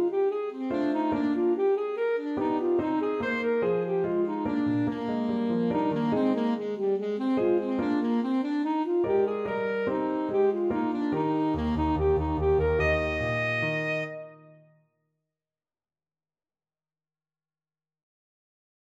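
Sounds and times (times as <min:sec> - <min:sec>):
alto saxophone march in D: 0:00.0 - 0:14.7.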